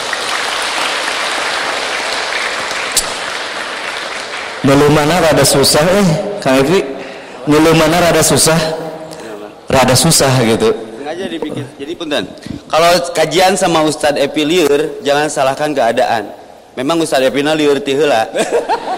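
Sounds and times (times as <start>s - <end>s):
audience clapping at an Islamic study gathering: 0.0s - 5.3s
speech: 4.6s - 8.8s, 9.7s - 18.9s
laughter: 18.2s - 18.9s.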